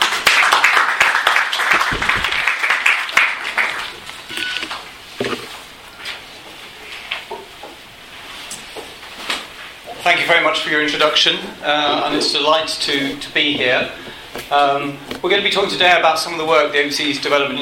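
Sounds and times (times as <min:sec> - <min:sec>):
audience clapping to welcome three speakers to the Crawford School: 0:00.0 - 0:04.9
speech: 0:10.1 - 0:17.6.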